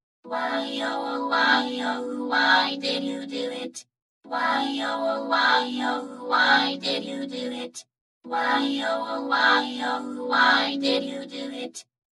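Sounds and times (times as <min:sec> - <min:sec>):
electronic a cappella vocals: 0:00.3 - 0:11.9.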